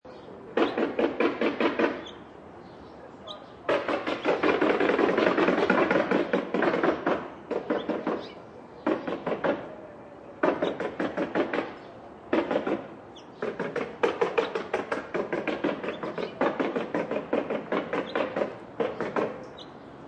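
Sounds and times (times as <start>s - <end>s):
contractor hammer: 0.6s - 2.0s, 3.7s - 9.7s, 10.4s - 19.4s
contractor saw: 3.7s - 9.7s, 10.4s - 19.6s.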